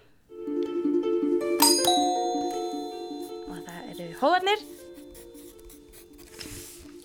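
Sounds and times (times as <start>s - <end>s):
harp being played: 0.4s - 5.4s
speech: 4.2s - 4.8s.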